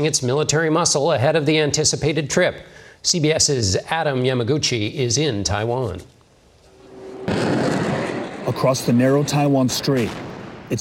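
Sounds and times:
speech: 0.0s - 6.2s, 8.5s - 10.8s
live fire military drill gunfire: 7.2s - 10.8s.

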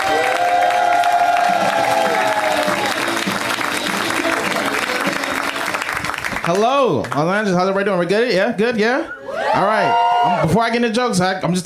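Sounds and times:
comedy club audience cheering: 0.0s - 6.9s, 9.2s - 10.8s
comedy club audience applauding a comedian: 0.0s - 7.9s
speech: 6.5s - 11.6s.

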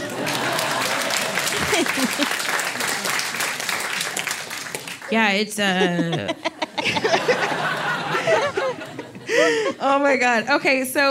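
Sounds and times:
laughter: 0.0s - 4.2s, 5.6s - 10.0s
applause: 0.0s - 5.2s
speech: 5.1s - 8.6s, 9.4s - 11.0s.

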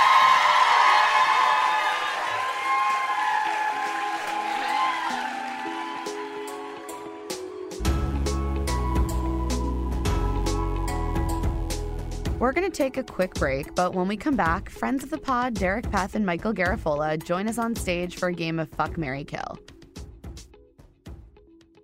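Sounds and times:
whoops: 0.0s - 7.4s
audience applause: 0.0s - 7.5s
beat-driven music track with a heavy bass line: 7.4s - 12.4s
speech: 12.7s - 19.7s.

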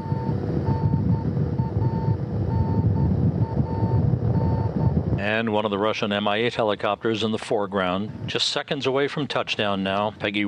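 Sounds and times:
Soyuz spacecraft radio beacon beeping: 0.0s - 4.9s
speech: 5.2s - 10.4s.

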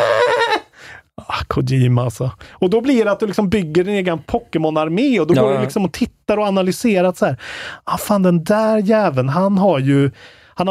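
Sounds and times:
speech: 1.6s - 10.6s
voice imitating a goat's bleat: 5.3s - 5.8s.

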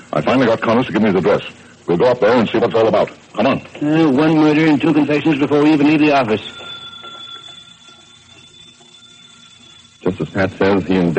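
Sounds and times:
speech: 0.1s - 6.6s, 10.4s - 11.1s
telephone bell ringing: 4.0s - 11.1s.

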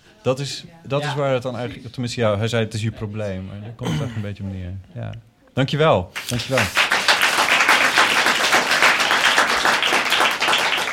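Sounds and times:
speech: 0.2s - 6.9s
audience applause at a live festival event: 6.2s - 10.9s.

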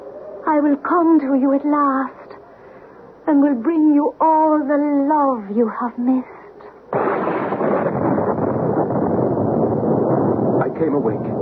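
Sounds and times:
speech: 0.5s - 2.2s, 3.3s - 6.4s, 10.8s - 11.3s
thunderclap in storm: 6.9s - 11.3s
heavy sustained rumbling roar of thunder: 7.0s - 11.3s.

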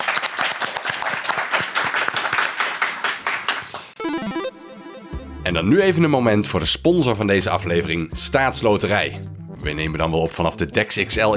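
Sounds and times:
audience applause: 0.0s - 4.0s
speech: 5.5s - 11.3s.

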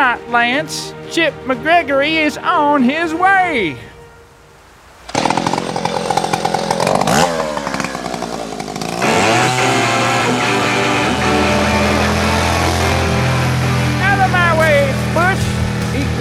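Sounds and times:
speech: 0.1s - 3.9s
motorcycle engine revving: 5.1s - 16.1s.

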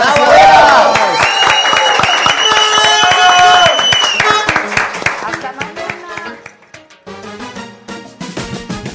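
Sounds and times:
crowd cheering: 0.0s - 6.5s
audience applause: 0.0s - 6.8s.

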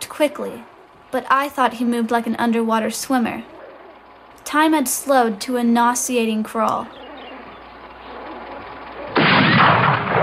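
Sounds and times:
speech: 0.2s - 3.6s, 4.4s - 7.0s
gunshot killing a dog: 9.2s - 10.2s.

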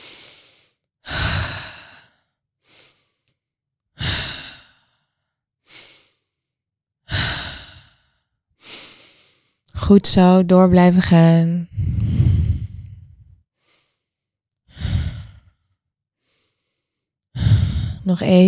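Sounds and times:
rapid rhythmic breathing in through the nose and out through the mouth: 0.0s - 3.3s, 4.0s - 6.4s, 7.1s - 9.6s, 11.7s - 15.6s
speech: 9.9s - 11.7s, 18.1s - 18.4s.

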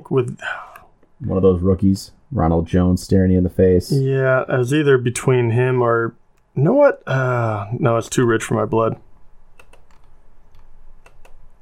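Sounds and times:
low hum: 0.0s - 11.5s
speech: 0.1s - 9.0s
computer mouse clicks making a fantasy football draft pick: 9.6s - 11.5s.

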